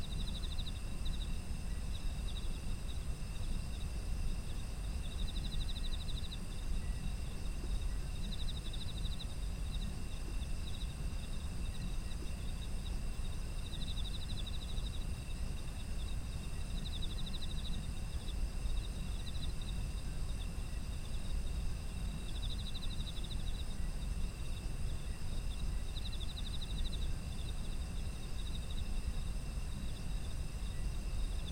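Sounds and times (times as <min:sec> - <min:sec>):
insect trills: 0:00.0 - 0:31.4.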